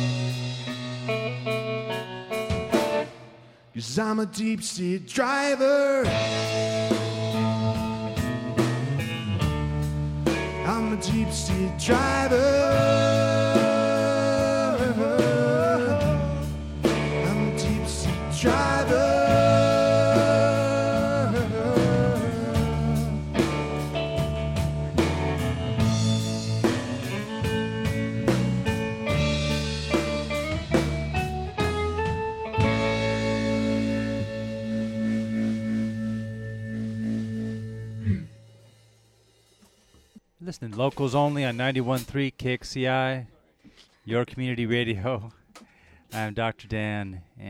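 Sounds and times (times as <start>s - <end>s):
end of a song playing: 0.0s - 3.4s, 6.0s - 38.8s
speech: 3.8s - 7.0s, 11.0s - 13.3s, 40.6s - 43.4s, 44.0s - 45.4s, 46.1s - 47.4s.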